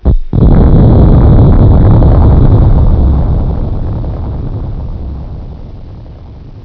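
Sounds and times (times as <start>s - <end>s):
boom: 0.0s - 6.6s.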